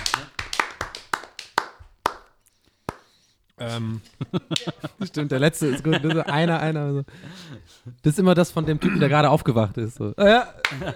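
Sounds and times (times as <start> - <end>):
hands clapping: 0.0 - 3.2, 4.3 - 5.2, 10.6 - 10.9
laughter: 3.6 - 8.0, 10.2 - 10.9
speech: 3.6 - 10.9.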